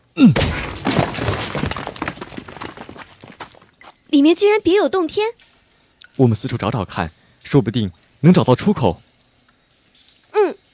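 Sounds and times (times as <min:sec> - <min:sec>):
debris clattering and crumbling: 0:00.0 - 0:03.8
speech: 0:00.2 - 0:00.6, 0:04.2 - 0:05.4, 0:06.2 - 0:09.1
cracked rock wall being smashed through: 0:00.2 - 0:03.7.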